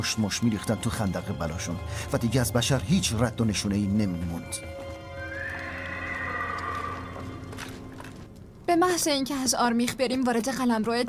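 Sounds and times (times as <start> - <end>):
speech: 0.0 - 4.9, 8.7 - 11.0
hooves scuffling: 4.5 - 8.6
horse neighing: 5.1 - 7.6.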